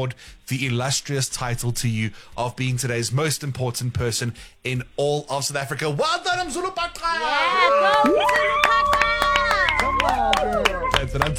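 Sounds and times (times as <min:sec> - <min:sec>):
speech: 0:00.0 - 0:11.3
people screaming: 0:07.1 - 0:11.3.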